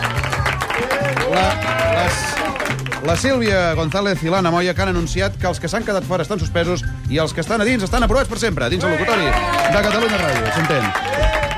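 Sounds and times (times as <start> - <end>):
students cheering and voices: 0.0 - 3.2, 8.7 - 11.5
studio audience of secondary school students clapping in a Catalunya Ràdio studio: 0.0 - 4.2, 8.8 - 11.5
speech: 1.3 - 2.3, 3.0 - 11.4.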